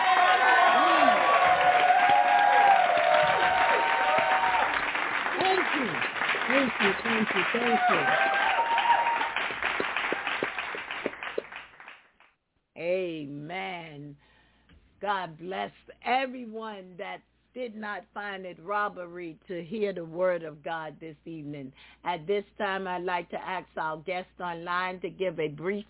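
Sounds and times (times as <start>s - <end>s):
audience hand clapping applause: 0.0s - 12.3s
speech: 15.6s - 25.8s.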